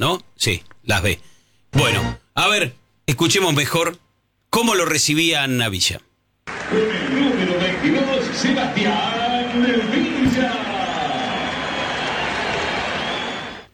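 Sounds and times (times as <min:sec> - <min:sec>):
speech: 0:00.0 - 0:10.7
applause: 0:06.5 - 0:13.7
stadium crowd whistling: 0:06.5 - 0:13.7.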